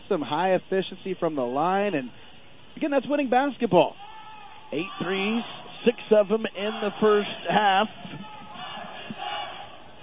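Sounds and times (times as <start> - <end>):
speech: 0.1 - 4.0, 4.7 - 8.3
basketball crowd chanting at a championship game: 4.1 - 10.0.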